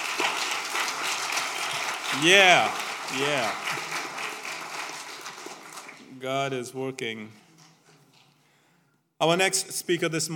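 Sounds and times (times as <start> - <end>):
audience applause: 0.0 - 6.1
speech: 2.1 - 4.0, 6.2 - 7.4, 9.2 - 10.3.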